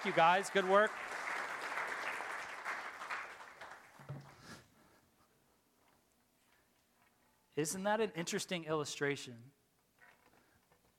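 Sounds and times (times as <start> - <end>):
speech: 0.0 - 1.2, 7.6 - 9.6
crowd applause: 0.0 - 4.0.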